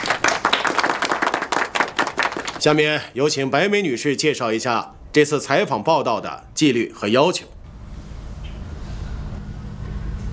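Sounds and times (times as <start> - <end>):
applause at a workplace meeting: 0.0 - 2.7
speech: 2.6 - 7.6.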